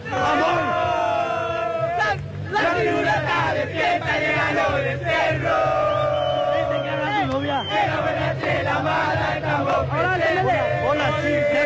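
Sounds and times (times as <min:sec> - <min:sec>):
huge stadium crowd chanting and cheering: 0:00.0 - 0:11.6.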